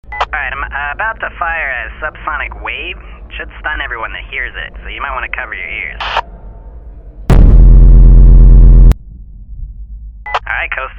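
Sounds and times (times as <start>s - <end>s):
sonic blast: 7.3s - 10.3s.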